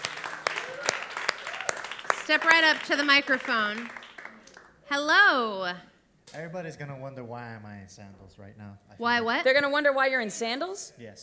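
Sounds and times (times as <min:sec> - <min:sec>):
rousing applause: 0:00.0 - 0:04.7
speech: 0:02.3 - 0:04.0, 0:04.9 - 0:11.2.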